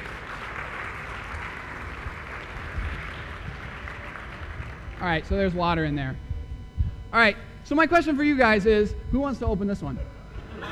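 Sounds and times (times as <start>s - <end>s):
audience applause: 0.0s - 5.0s
speech: 5.0s - 6.2s, 7.1s - 10.2s.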